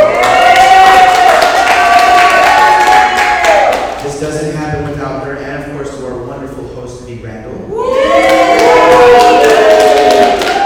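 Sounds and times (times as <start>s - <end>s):
crowd applauding: 0.0s - 4.2s, 7.9s - 10.6s.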